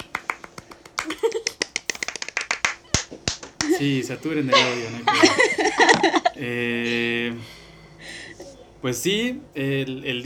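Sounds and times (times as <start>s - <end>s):
applause: 0.0s - 3.8s
laughter: 0.9s - 8.8s
speech: 3.8s - 7.6s, 8.8s - 10.2s.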